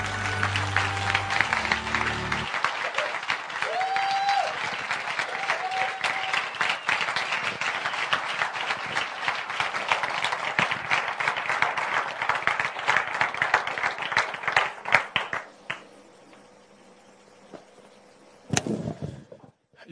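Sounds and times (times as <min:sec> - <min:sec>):
audience applause: 0:00.0 - 0:15.9.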